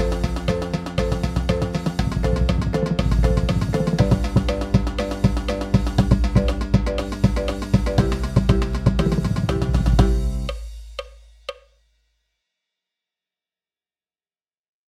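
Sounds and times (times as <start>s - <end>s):
count-off: 0.0s - 11.6s
marching percussion at 120 BPM: 0.0s - 11.7s.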